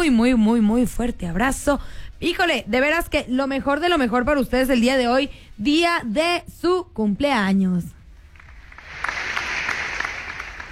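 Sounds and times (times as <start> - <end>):
speech: 0.0 - 8.0
applause sound effect: 8.4 - 10.6.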